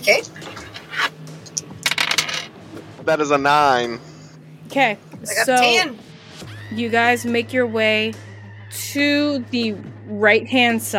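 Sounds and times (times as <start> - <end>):
speech: 0.0 - 0.4, 3.1 - 4.1, 4.7 - 6.0, 6.7 - 10.9
dice tumbling across a tabletop: 1.8 - 2.5.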